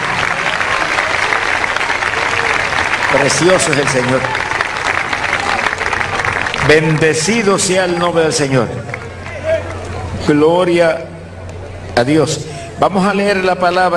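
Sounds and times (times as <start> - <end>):
audience applause: 0.0 - 10.2
speech: 3.1 - 4.5, 6.7 - 9.0, 10.3 - 11.1, 12.0 - 13.9.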